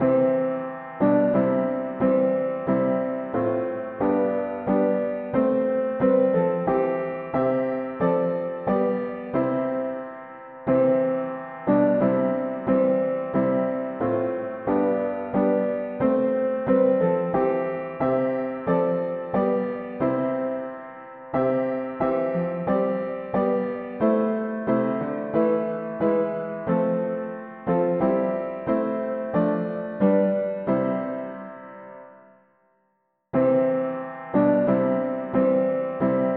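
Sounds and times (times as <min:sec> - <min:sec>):
mono piano: 0:00.0 - 0:36.3.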